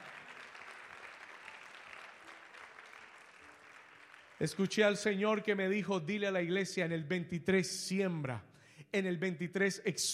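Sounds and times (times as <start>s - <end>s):
audience applause and hand claps: 0.0s - 5.0s
speech: 4.4s - 10.1s.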